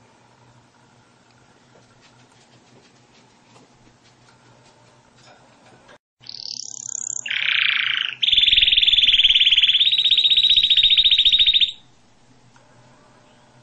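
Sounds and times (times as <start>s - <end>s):
canary singing: 6.2s - 11.9s.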